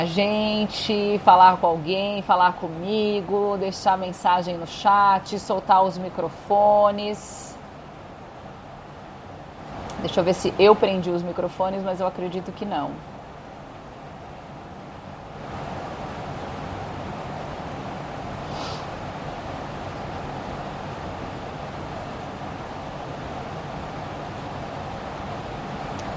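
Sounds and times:
speech: 0.0s - 7.4s, 10.0s - 13.1s
heavy rain falling outside: 15.2s - 26.1s.

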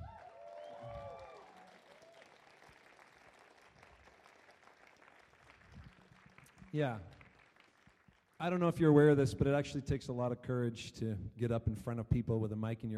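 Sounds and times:
crowd applause: 0.0s - 8.4s
speech: 6.7s - 7.2s, 8.4s - 12.9s.

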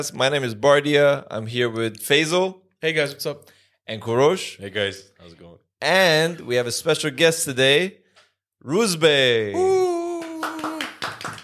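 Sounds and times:
speech: 0.0s - 8.0s, 8.6s - 9.9s
hand clapping: 10.0s - 11.4s.

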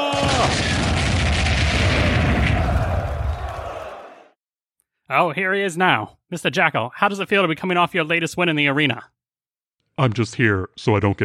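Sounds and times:
heavy explosive blast of ER large lasers striking a mech: 0.1s - 3.6s
speech: 5.1s - 9.2s, 10.0s - 11.2s.

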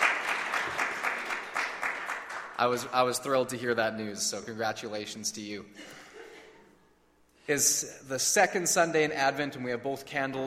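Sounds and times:
audience applause: 0.0s - 2.6s
speech: 2.6s - 6.0s, 7.5s - 10.4s.

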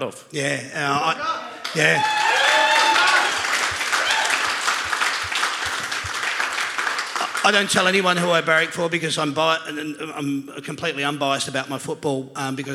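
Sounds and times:
speech: 0.0s - 2.2s, 7.4s - 12.7s
stadium crowd standing and clapping: 1.4s - 8.2s.

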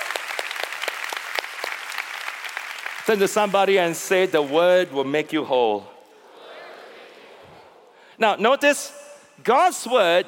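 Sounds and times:
congregation clapping: 0.0s - 5.3s
speech: 3.1s - 5.9s, 8.2s - 10.2s.

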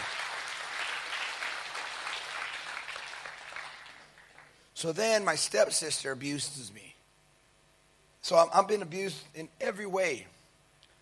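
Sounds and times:
crowd clapping: 0.0s - 4.6s
speech: 4.8s - 6.9s, 8.3s - 10.4s.

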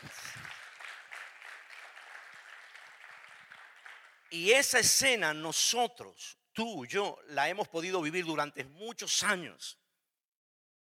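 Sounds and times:
audience applause: 0.0s - 4.4s
speech: 4.3s - 9.8s.

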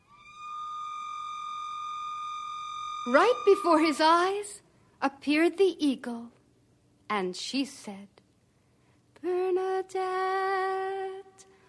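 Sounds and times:
whistle being blown: 0.0s - 4.4s
speech: 3.0s - 6.4s, 7.1s - 8.2s, 9.2s - 11.2s.

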